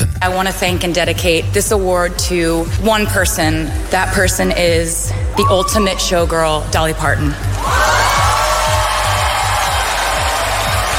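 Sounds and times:
speech: 0.2s - 8.0s
standing ovation applause: 7.6s - 10.9s.

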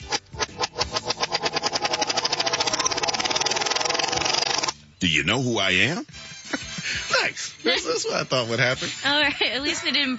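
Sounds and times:
wheel spun backwards with pulsing whir: 0.0s - 4.8s
speech: 5.0s - 10.1s.

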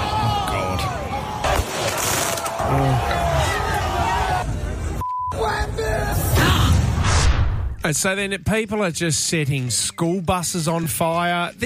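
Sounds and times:
street crowd shouting and cheering: 0.0s - 7.0s
speech: 7.8s - 11.6s.

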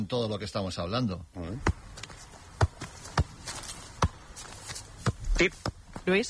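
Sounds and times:
speech: 0.0s - 1.8s, 5.4s - 6.2s
sharp low thumps of a football: 1.5s - 6.2s
football being juggled: 1.6s - 6.2s.

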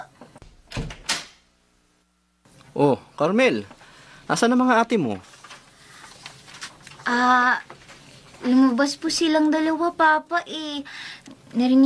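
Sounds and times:
door being opened: 0.4s - 1.4s
speech: 2.8s - 5.3s, 7.1s - 7.7s, 8.4s - 11.8s.

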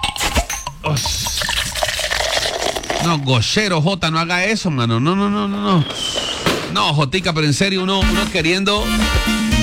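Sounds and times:
cold drink being opened: 0.2s - 3.3s
speech: 0.9s - 1.5s, 3.0s - 6.1s, 6.7s - 9.4s
cold drink poured in fizzy splashing stream: 1.0s - 3.4s.

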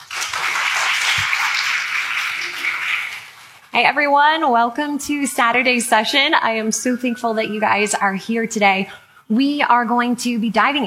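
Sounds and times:
audience applause welcoming a speaker at an apologetics conference: 0.0s - 3.6s
speech: 3.8s - 10.8s.

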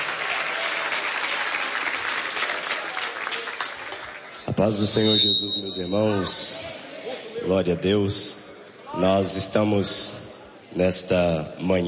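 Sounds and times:
audience applause: 0.0s - 4.6s
speech: 4.6s - 6.8s, 7.4s - 8.4s, 9.0s - 11.8s.

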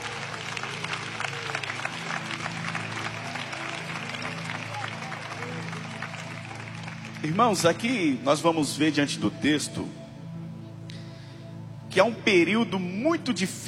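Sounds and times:
audience clapping hands: 0.0s - 8.2s
speech: 7.2s - 10.0s, 11.9s - 13.6s.

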